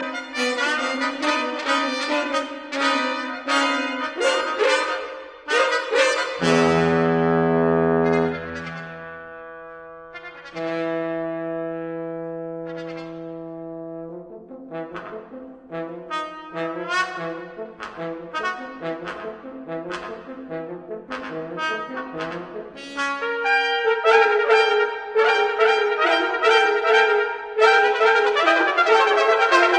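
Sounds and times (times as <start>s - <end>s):
quintet playing: 0.0s - 29.7s.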